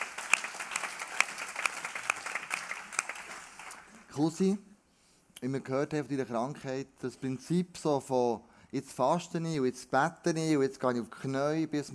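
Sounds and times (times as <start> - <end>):
applause: 0.0 - 4.1
speech: 4.2 - 4.7, 5.4 - 11.9.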